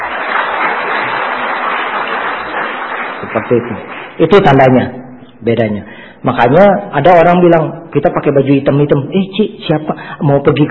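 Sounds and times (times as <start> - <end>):
audience applause: 0.0 - 4.2
speech: 3.4 - 10.6.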